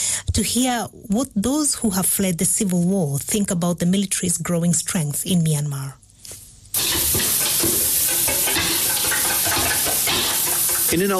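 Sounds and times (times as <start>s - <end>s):
speech: 0.4s - 6.0s, 10.9s - 11.1s
fish eggs sizzling in a frying pan in an old house in Mae Sot: 6.7s - 11.1s
stirring and scraping in a frying pan: 6.8s - 11.1s.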